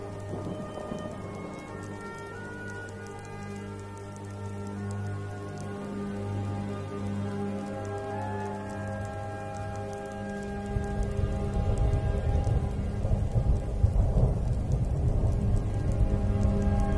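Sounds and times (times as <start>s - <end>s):
rain falling at night: 0.0s - 16.9s
scattered sharper drips: 0.0s - 16.9s.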